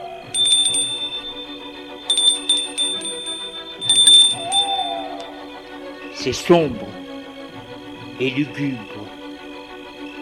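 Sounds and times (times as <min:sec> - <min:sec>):
castle door bell ringing: 0:00.4 - 0:05.2
speech: 0:06.2 - 0:07.0, 0:08.2 - 0:09.2.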